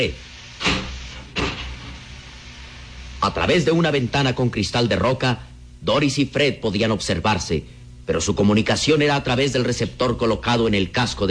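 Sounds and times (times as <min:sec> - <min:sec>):
speech: 0:00.0 - 0:00.2, 0:03.2 - 0:11.2
faint low hum: 0:00.0 - 0:11.2
automatic airtight door sealing shut: 0:00.5 - 0:02.2.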